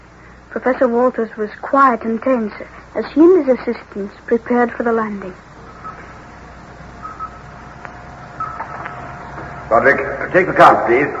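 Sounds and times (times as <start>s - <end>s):
thin continuous tone: 0.0s - 11.1s
speech: 0.5s - 5.5s, 9.7s - 11.1s
radar screen electronic blips: 5.6s - 6.2s, 6.9s - 9.4s.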